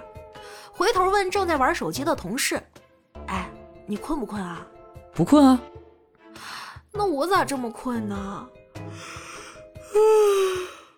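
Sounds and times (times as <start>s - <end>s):
speech: 0.8s - 2.8s, 3.9s - 5.8s, 6.4s - 9.1s, 9.9s - 10.4s
yawn: 9.9s - 10.9s.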